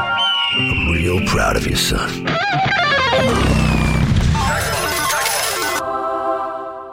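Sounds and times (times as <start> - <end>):
whistling pitches: 0.0 - 1.3, 3.2 - 4.2
speech: 0.6 - 3.7
sound effects mimicking a motorcycle ride: 2.3 - 5.9.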